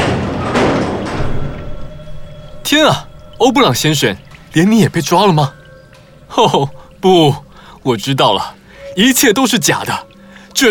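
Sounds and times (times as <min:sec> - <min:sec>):
door opening: 0:00.0 - 0:04.6
speech: 0:02.7 - 0:05.6, 0:06.3 - 0:10.7.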